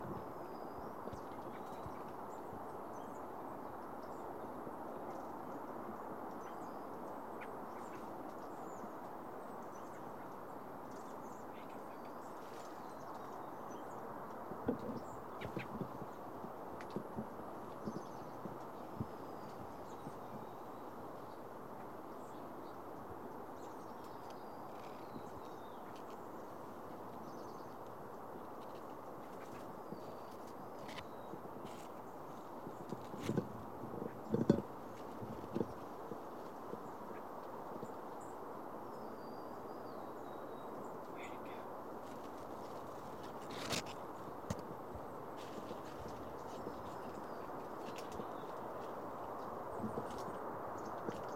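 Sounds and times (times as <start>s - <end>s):
bird: 0.0s - 51.3s.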